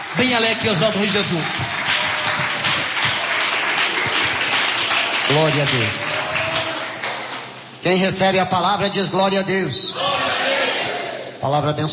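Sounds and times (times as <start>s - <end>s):
audience applauding: 0.0s - 7.7s
speech: 0.1s - 1.8s, 5.3s - 6.2s, 7.8s - 10.4s, 11.4s - 11.9s.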